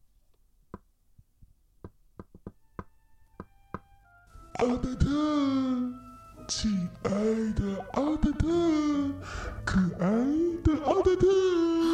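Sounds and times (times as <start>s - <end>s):
gentle knocking on a door: 1.8s - 3.9s
speech: 4.6s - 11.9s.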